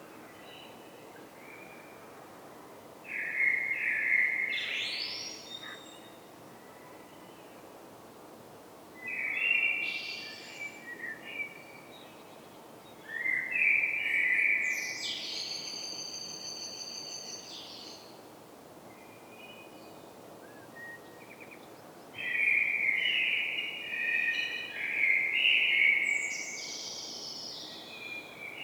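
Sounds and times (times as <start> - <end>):
common blackbird song: 3.1 - 6.2, 9.0 - 18.1, 19.0 - 28.6.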